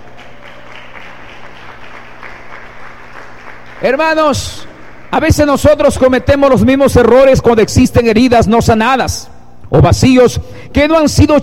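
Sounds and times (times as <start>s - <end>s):
audience applause: 0.0s - 5.4s
speech: 3.8s - 11.4s.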